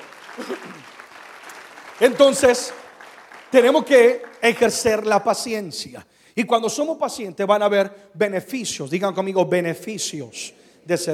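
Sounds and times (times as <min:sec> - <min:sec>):
audience applause: 0:00.0 - 0:05.3
speech: 0:00.4 - 0:00.9, 0:02.0 - 0:02.8, 0:03.5 - 0:11.1.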